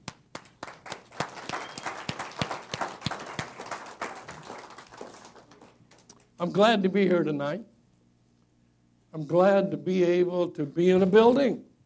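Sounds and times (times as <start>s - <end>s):
audience clapping: 0.0s - 6.4s
speech: 6.4s - 7.7s, 9.2s - 11.7s.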